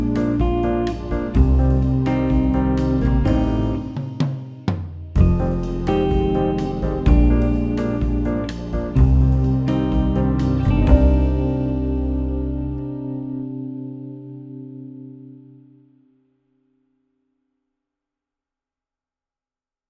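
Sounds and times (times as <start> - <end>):
jazz backing track: 0.0 - 14.4.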